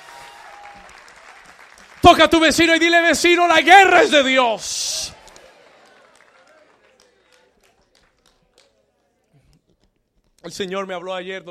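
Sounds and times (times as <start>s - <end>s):
applause: 0.0s - 3.6s, 4.9s - 9.1s
speech: 2.1s - 5.0s, 10.5s - 11.4s.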